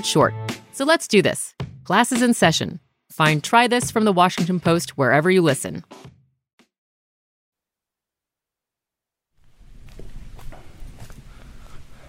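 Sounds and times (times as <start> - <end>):
speech: 0.0 - 6.2
footsteps crunching toward sugarcane in the Dominican Republic: 9.4 - 11.8.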